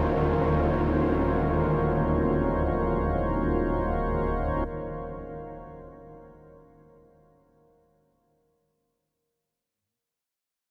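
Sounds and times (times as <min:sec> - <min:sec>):
MIDI MKII Deep Space blend electric piano: 0:00.0 - 0:06.8.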